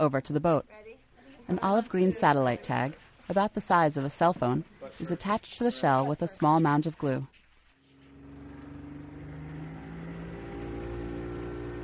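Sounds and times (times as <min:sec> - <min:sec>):
speech: 0:00.0 - 0:00.9, 0:01.5 - 0:07.4
boat motoring out into the bay: 0:07.8 - 0:11.8.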